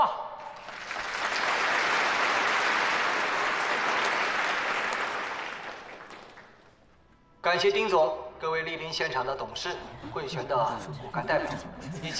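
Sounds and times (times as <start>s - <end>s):
audience applauding warmly: 0.4s - 6.8s
speech: 7.5s - 12.1s
laughter: 9.6s - 12.1s.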